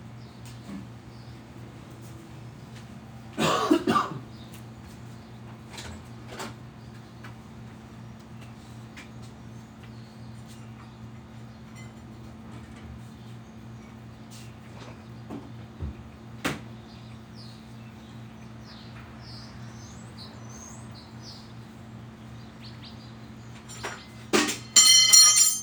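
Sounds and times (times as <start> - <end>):
heat pump hum in a backyard in Phoenix Arizona: 0.0 - 25.6.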